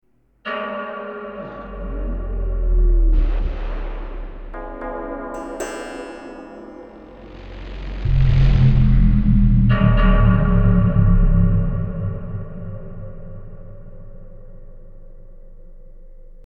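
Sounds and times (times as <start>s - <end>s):
Octapad electronic percussion pad: 3.2s - 14.3s.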